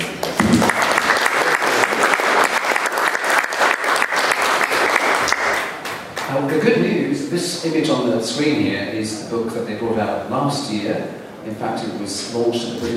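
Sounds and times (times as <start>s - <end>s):
audience applause welcoming two guest speakers at a talk about comics: 0.0s - 6.6s
speech: 7.4s - 12.9s.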